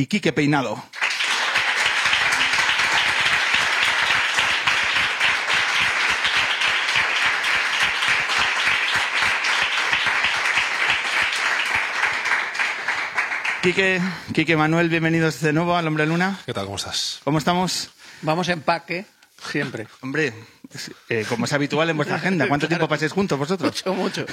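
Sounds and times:
speech: 0.0s - 1.0s, 13.6s - 24.3s
audience applause: 0.9s - 14.2s
laughter: 21.3s - 22.7s, 23.6s - 24.3s.

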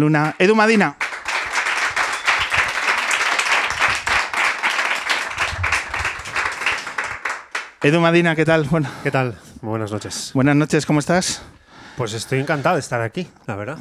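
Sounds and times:
speech: 0.0s - 1.0s, 7.8s - 13.7s
audience applause: 1.0s - 8.0s.

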